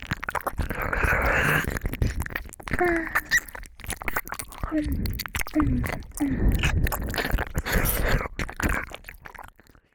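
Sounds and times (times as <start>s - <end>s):
ear licking sounds: 0.0s - 9.9s
person whispering: 2.7s - 3.3s, 4.6s - 7.0s.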